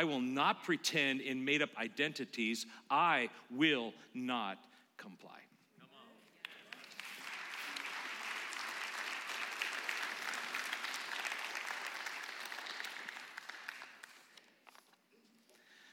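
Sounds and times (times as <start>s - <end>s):
speech: 0.0s - 5.5s
audience clapping: 6.4s - 14.9s.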